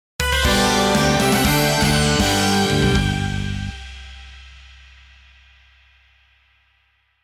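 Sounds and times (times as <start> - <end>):
fanfare: 0.2 - 4.3.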